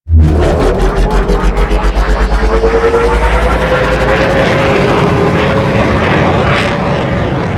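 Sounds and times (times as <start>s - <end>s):
drop ship departing: 0.1s - 7.4s.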